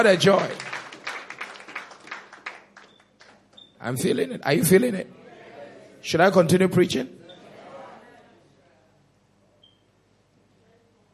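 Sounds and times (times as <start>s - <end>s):
speech: 0.0s - 0.7s, 3.8s - 5.2s, 6.0s - 7.2s
audience clapping hands in church: 0.0s - 3.6s.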